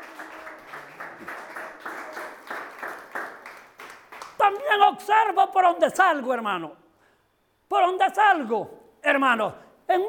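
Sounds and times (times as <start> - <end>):
audience clapping in a rhythmic beat: 0.0 - 4.8
speech: 4.6 - 6.8, 7.7 - 10.0.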